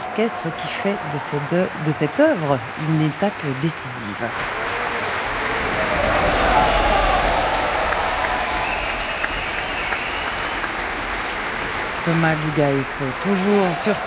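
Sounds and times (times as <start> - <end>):
audience applauding an orchestra in a concert hall: 0.0 - 14.0
speech: 0.2 - 4.8, 12.0 - 14.0.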